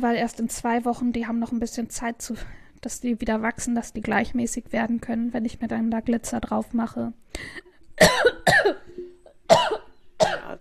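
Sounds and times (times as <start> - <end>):
speech: 0.0 - 8.8
woman coughing after swallowing the wrong way: 8.0 - 8.9, 9.5 - 10.5.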